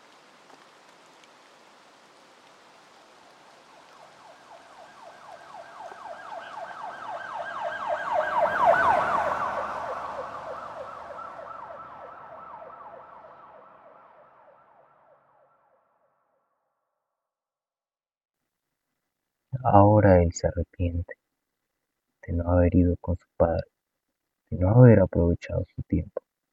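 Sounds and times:
ambulance siren wailing: 0:03.8 - 0:15.7
speech: 0:19.6 - 0:21.2, 0:22.3 - 0:23.8, 0:24.5 - 0:26.2.

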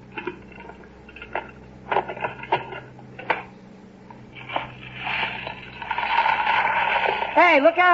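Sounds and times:
ice being poured into ice cream freezer: 0:04.4 - 0:07.5.

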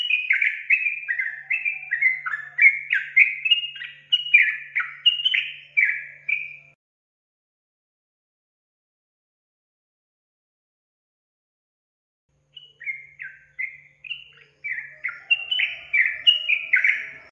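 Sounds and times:
Yellow-vented Bulbul song: 0:00.0 - 0:06.8, 0:12.4 - 0:17.3.

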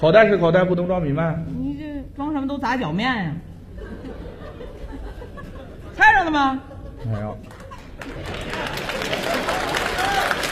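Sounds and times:
speech: 0:00.0 - 0:04.8, 0:06.0 - 0:09.8
laughter: 0:03.7 - 0:10.3
audience applause: 0:07.4 - 0:10.4.

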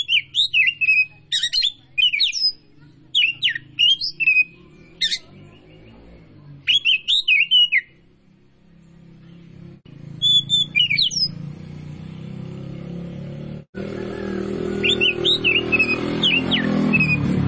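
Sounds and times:
Oriental magpie-robin of the Tretes form singing vigorously with whistled phrases: 0:00.0 - 0:06.0, 0:06.6 - 0:08.0, 0:10.2 - 0:11.4, 0:14.7 - 0:17.3.

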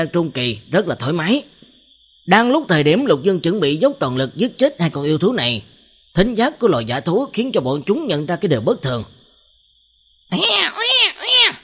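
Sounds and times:
speech: 0:00.0 - 0:01.5, 0:02.3 - 0:09.2, 0:10.3 - 0:11.6
distant newborn baby crying: 0:10.3 - 0:11.6.

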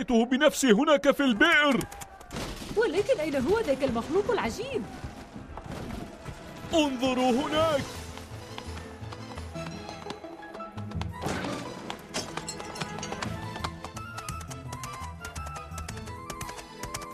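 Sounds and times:
speech: 0:00.0 - 0:02.1, 0:02.8 - 0:05.1, 0:06.7 - 0:08.0
donkey running wildly: 0:03.0 - 0:17.1.

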